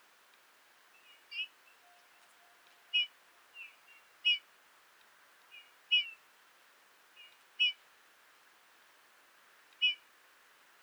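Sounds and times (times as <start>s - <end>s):
Eurasian bullfinch Pyrrhula pyrrhula piping calls: 1.0s - 4.4s, 9.8s - 10.0s.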